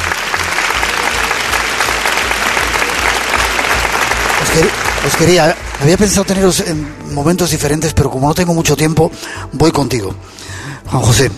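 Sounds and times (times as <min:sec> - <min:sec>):
audience applause: 0:00.0 - 0:07.6
speech: 0:04.6 - 0:11.3.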